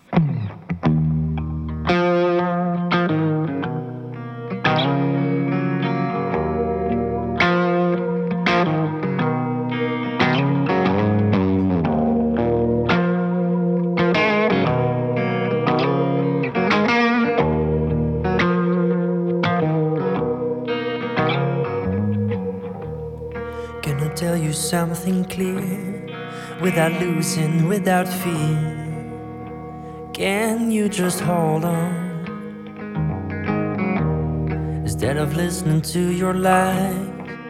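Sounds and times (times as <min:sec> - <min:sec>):
blues rock song with thick fuzz guitar: 0:00.1 - 0:37.4
speech: 0:24.8 - 0:25.9, 0:26.6 - 0:28.8, 0:30.2 - 0:32.0, 0:35.0 - 0:37.1.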